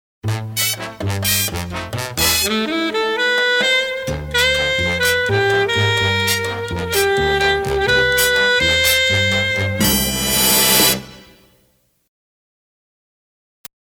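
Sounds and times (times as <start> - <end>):
tango music: 0.2 - 11.4.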